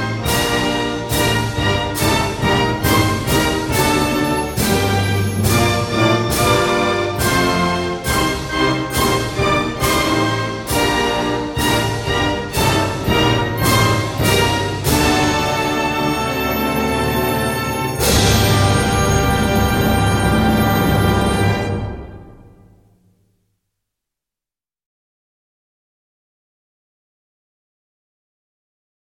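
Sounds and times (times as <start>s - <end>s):
instrumental version of a national anthem: 0.0s - 22.8s.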